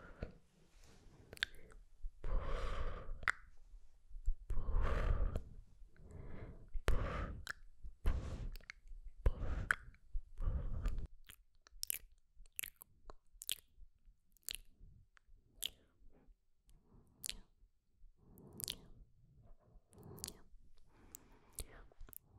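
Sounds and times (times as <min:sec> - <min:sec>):
sharp tongue clicks: 0:01.3 - 0:01.8, 0:03.2 - 0:03.6, 0:06.9 - 0:07.7, 0:08.5 - 0:15.9, 0:17.2 - 0:17.6, 0:18.4 - 0:18.9, 0:19.9 - 0:22.3
whispered sk sk tk tk mouth sounds: 0:01.3 - 0:03.6, 0:04.2 - 0:13.7, 0:15.6 - 0:16.0, 0:17.1 - 0:17.6, 0:18.4 - 0:19.0, 0:19.8 - 0:22.3.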